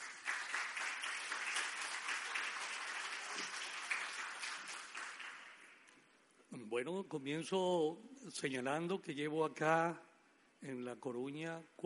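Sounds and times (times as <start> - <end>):
audience applause: 0.0 - 5.8
speech: 6.7 - 11.8.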